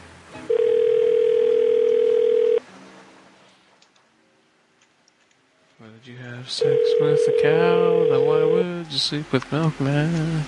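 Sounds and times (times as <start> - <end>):
telephone dial tone after dropped call: 0.5 - 2.6, 6.6 - 8.7
speech: 6.5 - 10.4.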